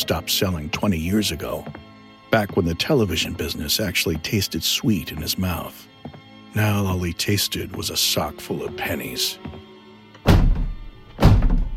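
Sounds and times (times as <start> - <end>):
speech: 0.0 - 9.6
fierce knocking on a glass-framed front door: 10.3 - 11.7.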